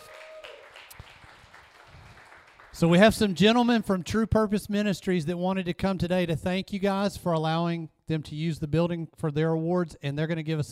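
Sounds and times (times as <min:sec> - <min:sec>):
audience applause: 0:00.0 - 0:03.3
speech: 0:02.8 - 0:10.7.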